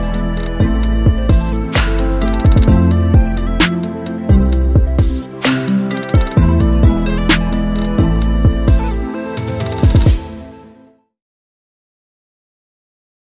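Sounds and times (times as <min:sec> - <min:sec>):
pumping keyboard: 0:00.3 - 0:10.3.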